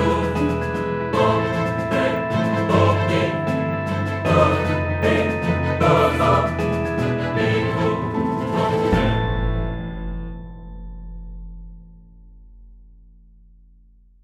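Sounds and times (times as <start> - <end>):
musical accompaniment: 0.0 - 10.6.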